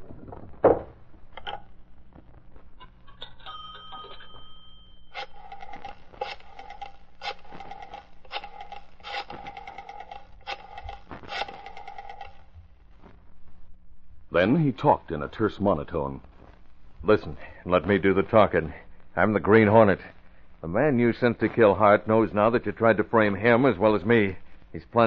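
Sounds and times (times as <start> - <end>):
telephone number being dialed in a phone booth: 5.1 - 12.4
speech: 14.4 - 16.3, 17.0 - 25.0.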